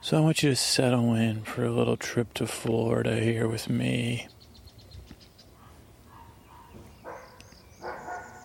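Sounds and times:
birds tweeting in Florida: 0:00.0 - 0:08.4
speech: 0:00.1 - 0:04.4
dog barking, likely at a squirrel, outdoors in Florida: 0:05.6 - 0:08.4.

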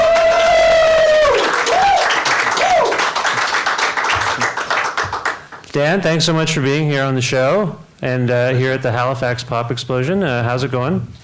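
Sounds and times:
audience applauding: 0:00.0 - 0:05.7
speech: 0:05.8 - 0:11.2.

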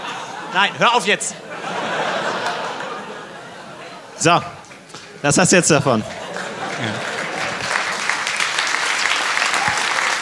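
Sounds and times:
laughter: 0:00.0 - 0:04.6, 0:05.7 - 0:08.5
speech: 0:00.5 - 0:01.8, 0:04.2 - 0:04.6, 0:05.2 - 0:06.2
audience applause: 0:02.1 - 0:03.0, 0:05.9 - 0:10.2.

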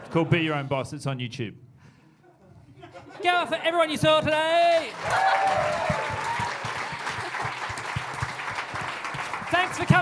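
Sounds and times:
speech: 0:00.1 - 0:01.7, 0:03.1 - 0:05.9, 0:09.6 - 0:10.0
audience applause at the Haya Bar: 0:04.3 - 0:10.0.

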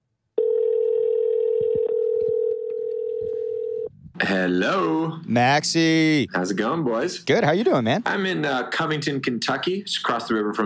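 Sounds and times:
telephone dial tone of outgoing call: 0:00.4 - 0:03.9
speech: 0:04.2 - 0:10.6.

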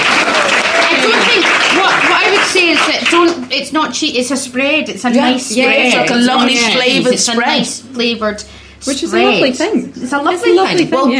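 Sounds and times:
round of applause: 0:00.0 - 0:03.4
speech: 0:03.6 - 0:11.1.

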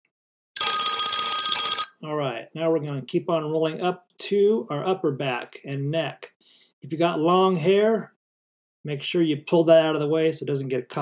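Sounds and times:
workout timer bell ringing: 0:00.6 - 0:01.9
speech: 0:02.0 - 0:08.2, 0:08.8 - 0:11.0.

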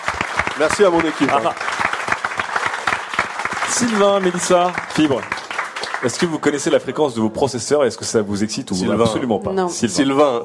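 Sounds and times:
audience applause: 0:00.0 - 0:07.0
speech: 0:00.6 - 0:01.8, 0:03.7 - 0:05.4, 0:06.0 - 0:10.4.

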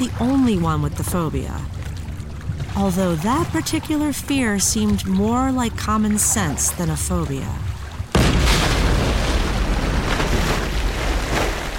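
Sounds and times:
speech: 0:00.0 - 0:01.8, 0:02.8 - 0:07.7
roar of churning crashing water: 0:00.0 - 0:11.7
huge creature breaching water, massive splash: 0:08.1 - 0:11.7.

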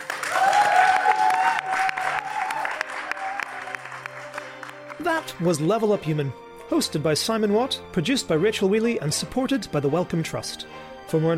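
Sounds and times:
audience applause: 0:00.0 - 0:05.4
speech: 0:05.0 - 0:11.3.

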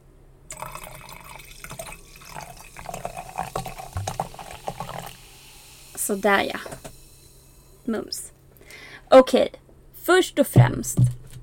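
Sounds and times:
wine pouring into a glass: 0:00.5 - 0:07.9
speech: 0:06.1 - 0:06.7, 0:07.9 - 0:08.2, 0:09.1 - 0:11.2.

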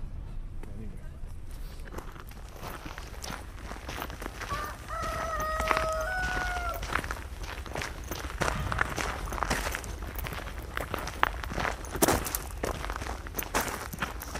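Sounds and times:
footsteps of a person walking along open fields: 0:01.3 - 0:14.3.

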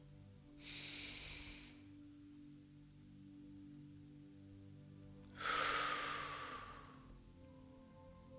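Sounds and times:
faint steady low drone: 0:00.0 - 0:08.3
slow breaths during a guided mantra meditation: 0:00.6 - 0:02.1, 0:05.3 - 0:07.2.

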